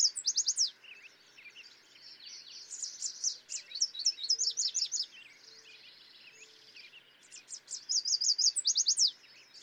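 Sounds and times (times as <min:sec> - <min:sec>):
yellow warbler singing: 0:00.0 - 0:09.6.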